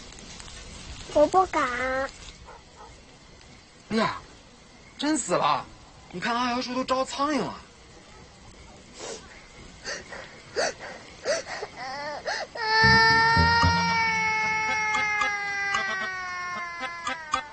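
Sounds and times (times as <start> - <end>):
speech: 1.1 - 2.2, 3.9 - 4.2, 5.0 - 7.6
child crying: 11.3 - 17.5.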